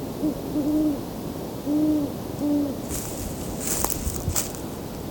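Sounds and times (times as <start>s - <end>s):
Great Horned Owl hooting: 0.1s - 1.1s, 1.6s - 2.9s
rustling and scraping: 2.9s - 5.0s.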